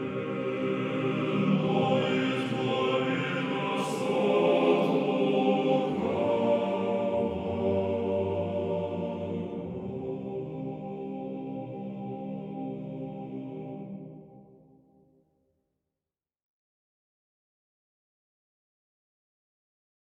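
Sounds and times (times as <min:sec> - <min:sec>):
male choir singing: 0:00.0 - 0:14.5.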